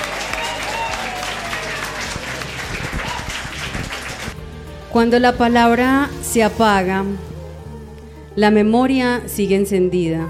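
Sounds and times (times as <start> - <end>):
audience applause: 0.0 - 4.4
speech: 4.9 - 7.3, 8.4 - 10.2.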